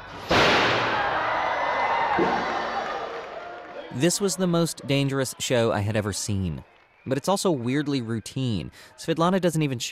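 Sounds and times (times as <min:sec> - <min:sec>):
circus crowd cheering: 0:00.0 - 0:09.9
circus human cannonball cannon firing: 0:00.3 - 0:01.1
speech: 0:02.2 - 0:02.6, 0:03.9 - 0:09.9.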